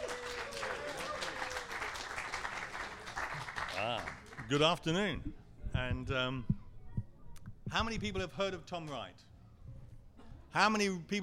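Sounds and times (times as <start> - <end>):
audience applause welcoming speaker: 0.0 - 4.6
speech: 3.8 - 6.5, 7.7 - 9.3, 10.5 - 11.2.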